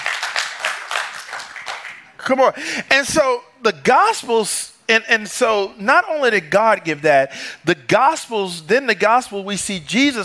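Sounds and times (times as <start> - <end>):
rhythmic audience clapping: 0.0 - 2.3
speech: 2.3 - 10.2.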